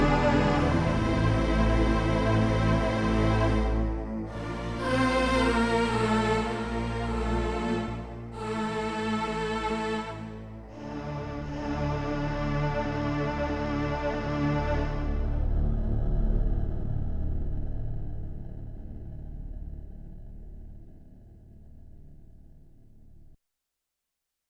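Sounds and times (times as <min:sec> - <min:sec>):
deep string section on a Yamaha TX16W sampler: 0:00.0 - 0:17.8.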